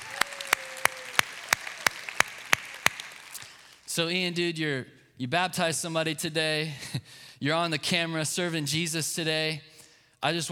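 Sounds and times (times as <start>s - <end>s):
audience applause: 0.0s - 3.8s
speech: 4.0s - 10.4s.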